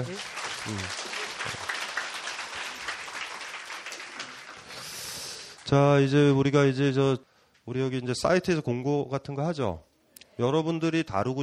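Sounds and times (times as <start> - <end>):
speech: 0.0 - 1.6, 5.7 - 11.4
audience applauding: 0.0 - 6.1.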